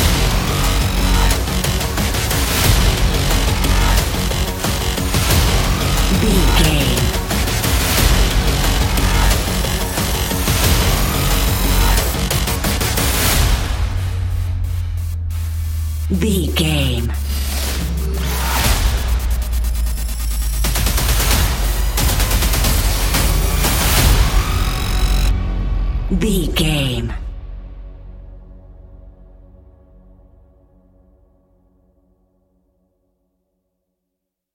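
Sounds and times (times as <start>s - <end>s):
action industrial hybrid trailer music: 0.0s - 29.6s.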